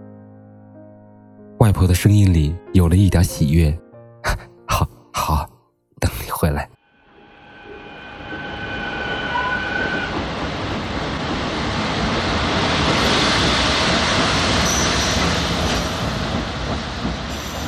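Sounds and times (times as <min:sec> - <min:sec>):
speech: 0:01.6 - 0:05.5
thin high-pitched squeals: 0:07.0 - 0:10.4
train rushing through the night, wheels roaring on rails: 0:07.2 - 0:17.6.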